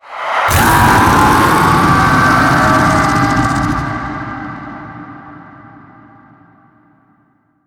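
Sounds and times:
death roar: 0:00.1 - 0:05.7.

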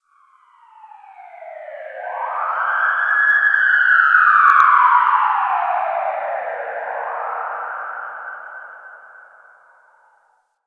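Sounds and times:
distant siren in a tunnel: 0:00.1 - 0:10.3.

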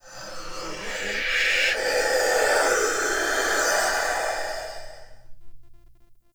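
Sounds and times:
binaural whispers: 0:00.0 - 0:05.2.

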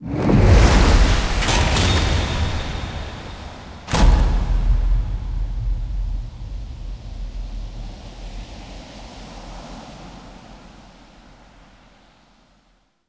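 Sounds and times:
fight start stinger: 0:01.1 - 0:09.2.

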